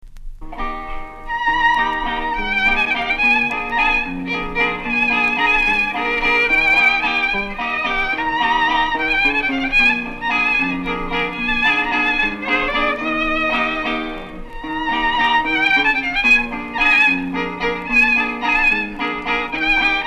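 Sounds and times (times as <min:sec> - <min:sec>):
waltz music: 0:01.2 - 0:20.0.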